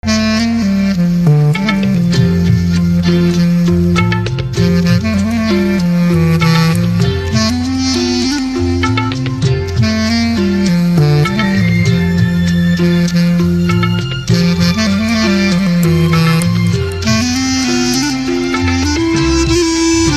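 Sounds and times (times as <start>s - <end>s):
saxophone instrumental ringtone: 0.0s - 20.1s.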